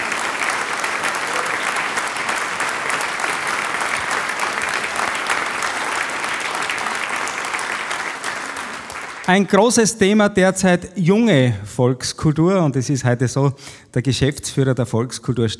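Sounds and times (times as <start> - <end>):
audience applause: 0.0 - 9.6
speech: 9.3 - 15.5.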